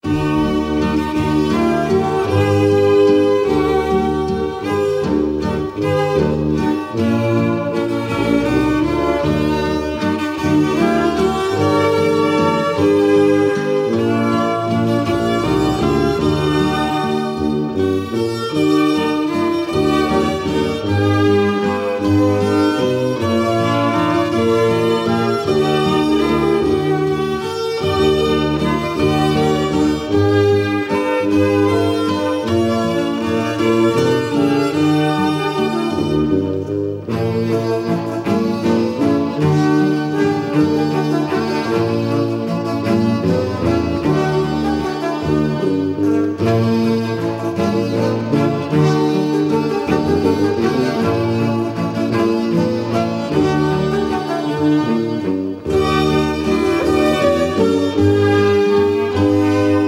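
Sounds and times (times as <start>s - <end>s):
waltz music: 0.0s - 59.8s.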